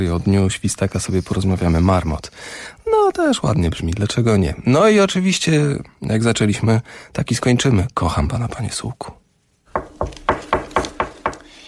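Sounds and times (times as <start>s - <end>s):
speech: 0.0s - 9.2s
sharp knocks on a wooden door: 9.8s - 11.5s.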